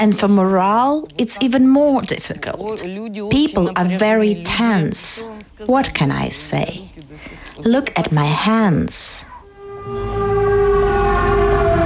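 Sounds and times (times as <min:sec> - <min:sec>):
speech: 0:00.0 - 0:10.2
air raid siren wailing: 0:09.3 - 0:11.8.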